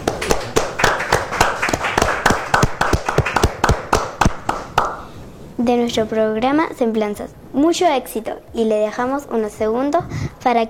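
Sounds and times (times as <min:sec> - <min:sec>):
applause: 0:00.0 - 0:05.0
speech: 0:05.6 - 0:10.6.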